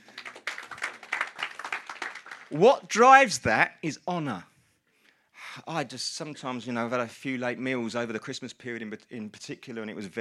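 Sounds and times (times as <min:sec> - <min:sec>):
audience clapping: 0:00.0 - 0:02.8
speech: 0:02.5 - 0:04.5, 0:05.6 - 0:10.1.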